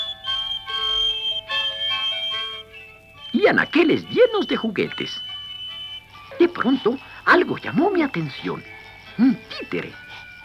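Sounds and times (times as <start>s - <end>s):
music box melody: 0.0s - 10.4s
speech: 3.4s - 5.3s, 6.4s - 10.0s.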